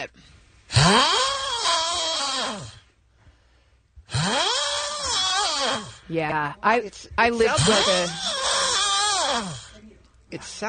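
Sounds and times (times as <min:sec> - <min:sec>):
speech: 0:00.0 - 0:01.2, 0:06.1 - 0:08.3, 0:09.3 - 0:09.6, 0:10.3 - 0:10.6
man snoring: 0:00.7 - 0:02.9, 0:04.1 - 0:06.1, 0:07.4 - 0:09.8.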